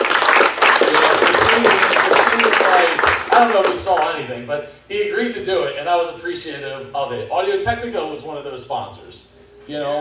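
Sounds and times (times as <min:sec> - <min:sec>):
round of applause: 0:00.0 - 0:04.0
speech: 0:03.4 - 0:09.9.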